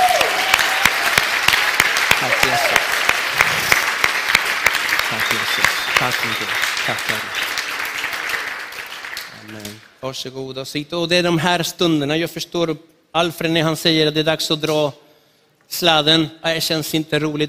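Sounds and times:
big round of applause: 0.0s - 10.0s
speech: 6.0s - 7.5s, 9.5s - 15.0s, 15.7s - 17.4s.

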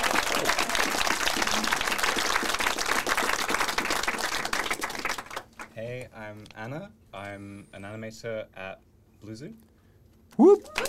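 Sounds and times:
applause: 0.0s - 5.8s, 10.6s - 10.8s
speech: 6.6s - 9.7s.

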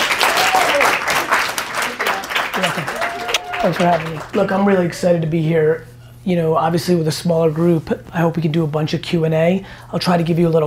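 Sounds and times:
audience applause: 0.0s - 4.8s
speech: 3.6s - 10.6s.

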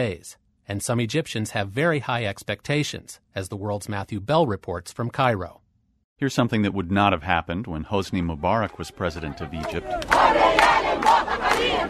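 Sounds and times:
speech: 0.0s - 5.6s, 6.2s - 11.8s
large crowd of demonstrators chanting in unison: 9.0s - 11.8s.

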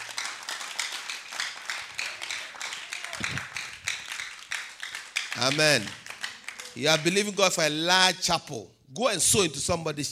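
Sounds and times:
audience clapping: 0.0s - 7.8s
speech: 3.2s - 3.5s, 5.4s - 6.0s, 6.8s - 10.1s.

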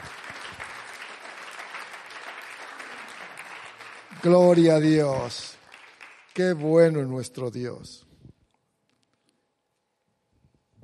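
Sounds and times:
audience applauding: 0.0s - 7.3s
speech: 4.2s - 5.6s, 6.4s - 8.1s.

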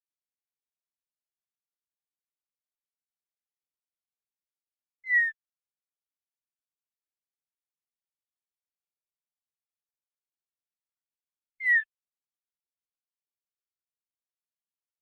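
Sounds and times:
Western meadowlark slurred falling whistle call: 5.0s - 5.4s, 11.6s - 11.9s.

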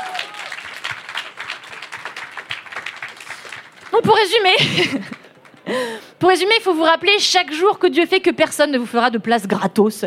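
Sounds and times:
audience applause: 0.0s - 5.8s
speech: 4.0s - 10.0s.

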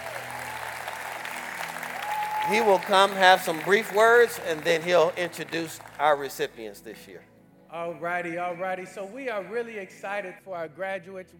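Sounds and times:
crowd clapping: 0.0s - 6.7s
speech: 2.5s - 11.3s.

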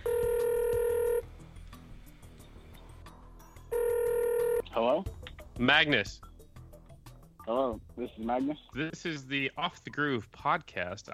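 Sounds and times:
outgoing phone call ringback tone: 0.0s - 1.2s, 3.7s - 4.7s
speech: 5.0s - 6.2s, 7.5s - 11.1s.

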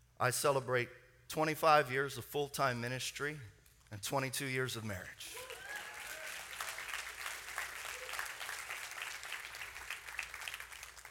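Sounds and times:
speech: 0.2s - 5.5s
audience clapping: 5.3s - 11.0s.

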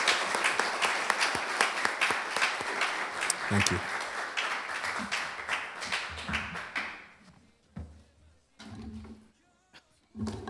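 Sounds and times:
round of applause: 0.0s - 7.2s
speech: 3.5s - 4.0s.

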